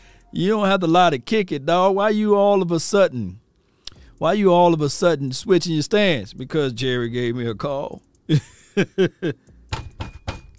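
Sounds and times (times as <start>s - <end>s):
speech: 0.3s - 3.4s, 4.2s - 9.4s
laughter: 8.3s - 9.4s
knocking on a door: 9.7s - 10.5s.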